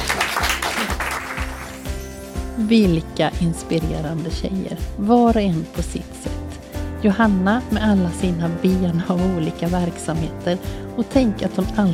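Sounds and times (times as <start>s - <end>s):
crowd clapping: 0.0s - 2.0s
speech: 2.6s - 6.4s, 7.0s - 11.9s.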